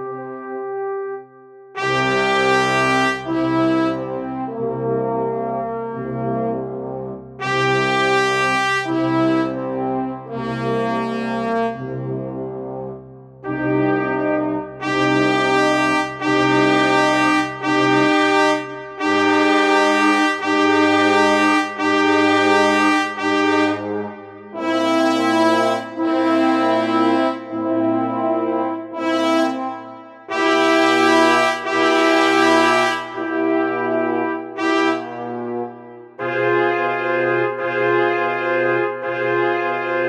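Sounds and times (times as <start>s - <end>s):
brass: 0.0s - 40.0s.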